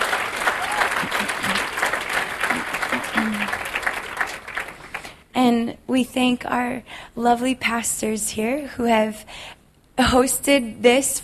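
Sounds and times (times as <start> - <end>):
audience clapping: 0.0 - 5.3
speech: 5.4 - 11.2.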